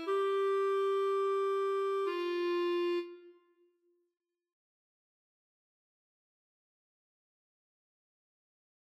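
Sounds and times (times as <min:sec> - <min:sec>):
clarinet duet: 0:00.0 - 0:03.6.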